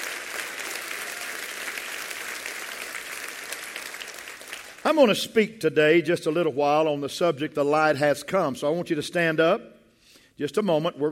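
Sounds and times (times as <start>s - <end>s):
audience clapping hands: 0.0s - 5.0s
speech: 4.9s - 9.7s, 10.4s - 11.1s.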